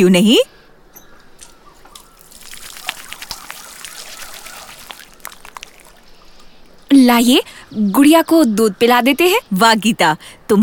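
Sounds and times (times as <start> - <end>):
speech: 0.0 - 0.6, 6.9 - 10.6
water running and splashing as someone washes hands with soap: 1.9 - 6.9.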